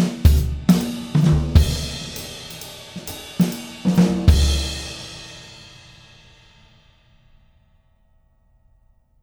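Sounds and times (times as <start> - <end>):
big band jazz drum tracks: 0.0 - 6.0.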